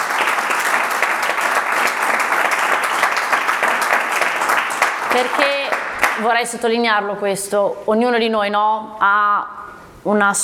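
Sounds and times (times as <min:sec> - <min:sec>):
audience applause: 0:00.0 - 0:06.4
speech: 0:05.2 - 0:10.4.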